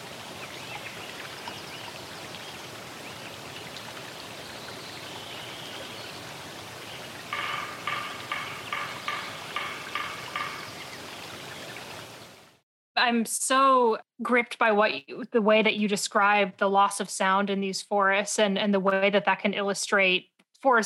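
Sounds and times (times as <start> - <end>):
stream water rushing: 0.0 - 12.6
sapsucker hammering on wood: 7.3 - 10.8
speech: 13.0 - 20.8.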